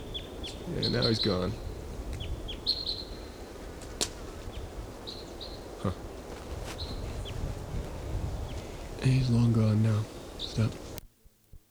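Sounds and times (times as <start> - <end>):
bird singing in the top of a tree: 0.0 - 11.0
speech: 0.5 - 1.7, 5.8 - 6.0, 9.0 - 10.8.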